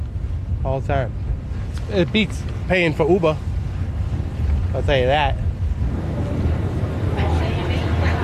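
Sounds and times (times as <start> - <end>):
commuter ferry engine rumble: 0.0 - 8.2
wind noise aboard a commuter ferry: 0.0 - 8.2
speech: 0.6 - 1.2, 1.9 - 3.5, 4.7 - 6.0.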